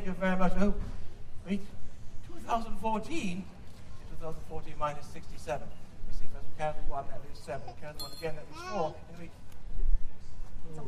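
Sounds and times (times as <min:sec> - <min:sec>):
speech: 0:00.1 - 0:01.8, 0:02.5 - 0:03.6, 0:04.2 - 0:05.8, 0:06.6 - 0:09.4, 0:10.7 - 0:10.8
hand bell ringing: 0:08.0 - 0:08.4.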